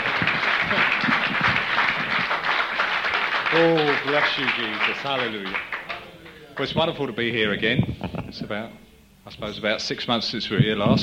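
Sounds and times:
audience clapping: 0:00.0 - 0:07.0
speech: 0:03.5 - 0:05.7, 0:06.6 - 0:11.0.

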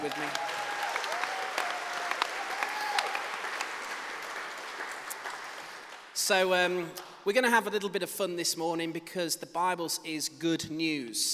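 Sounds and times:
speech: 0:00.0 - 0:00.5, 0:06.3 - 0:11.3
audience applause: 0:00.0 - 0:06.2.

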